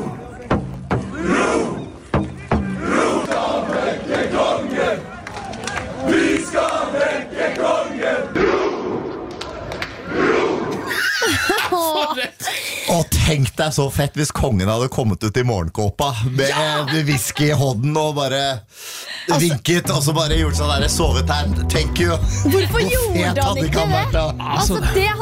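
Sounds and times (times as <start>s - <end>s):
crowd shouting outside palace: 1.0s - 10.9s
laughter: 10.8s - 13.2s, 16.1s - 18.0s, 22.0s - 25.0s
speech: 13.6s - 25.2s.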